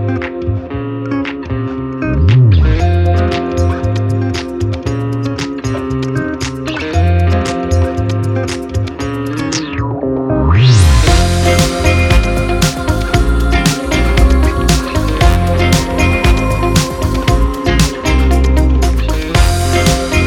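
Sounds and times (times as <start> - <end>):
funk groove: 0.2 - 9.9, 10.7 - 20.2.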